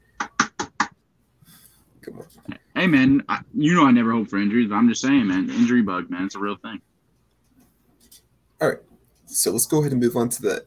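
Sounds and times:
knocking on wood: 0:00.2 - 0:01.0
speech: 0:02.0 - 0:06.9, 0:08.6 - 0:10.6.

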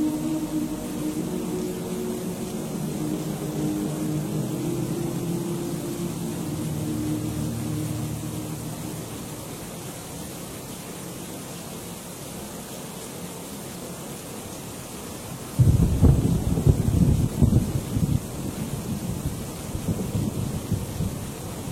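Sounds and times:
stormy ambience in a monastery: 0:00.0 - 0:10.0, 0:15.6 - 0:21.6
droning tone: 0:00.0 - 0:10.4.

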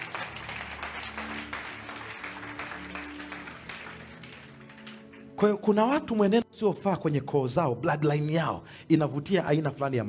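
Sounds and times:
congregation clapping for Jesus during a Swahili-language sermon: 0:00.0 - 0:06.4
speech: 0:05.4 - 0:10.0.

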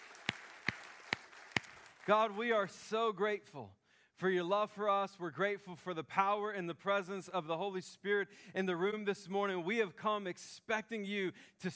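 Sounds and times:
audience hand clapping in praise: 0:00.0 - 0:02.6
speech: 0:02.1 - 0:11.7.

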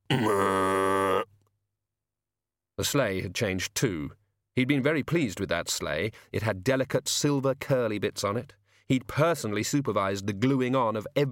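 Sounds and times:
person imitating a pig's grunt: 0:00.0 - 0:01.3
speech: 0:00.1 - 0:00.5, 0:02.8 - 0:11.3.

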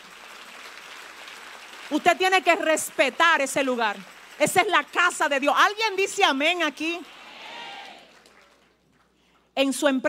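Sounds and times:
audience applauding: 0:00.0 - 0:05.2, 0:06.7 - 0:09.2
speech: 0:01.9 - 0:07.2, 0:09.6 - 0:10.0.

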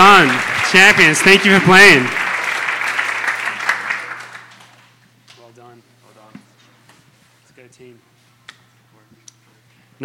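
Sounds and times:
crowd applause cheering the winning team at a team game: 0:00.0 - 0:04.9
speech: 0:00.2 - 0:02.2.

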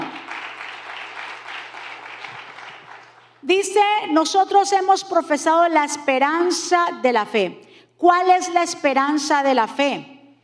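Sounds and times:
audience applause: 0:00.0 - 0:03.4
speech: 0:03.4 - 0:10.1.

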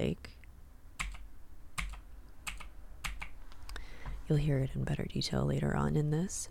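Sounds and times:
speech: 0:00.0 - 0:00.4, 0:04.3 - 0:06.4
typing on a light pink Razer BlackWidow Quartz mechanical keyboard with tactile switches: 0:01.8 - 0:03.4.

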